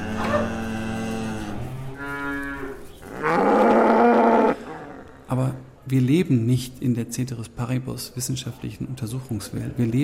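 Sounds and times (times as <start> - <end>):
cow mooing: 0.0 - 5.3
speech: 5.9 - 10.0.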